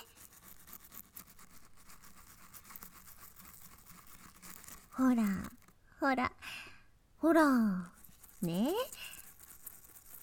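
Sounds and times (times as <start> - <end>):
toothbrush brushing back teeth: 0.0 - 5.7, 7.8 - 10.2
speech: 5.0 - 6.3, 7.2 - 9.0.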